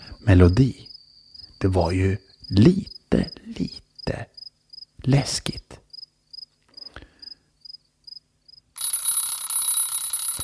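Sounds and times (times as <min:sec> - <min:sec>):
speech: 0:00.3 - 0:00.9, 0:01.6 - 0:04.3, 0:05.0 - 0:05.7
alarm clock beeping: 0:08.8 - 0:10.4.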